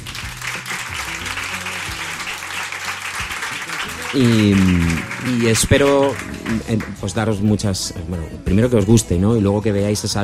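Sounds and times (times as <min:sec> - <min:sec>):
audience applause: 0:00.0 - 0:07.1
speech: 0:04.1 - 0:10.2.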